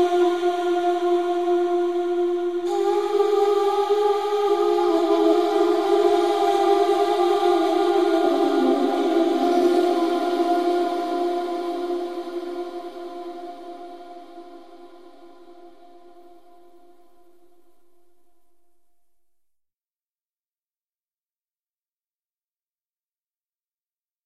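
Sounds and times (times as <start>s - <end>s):
instrumental music: 0.0s - 17.8s.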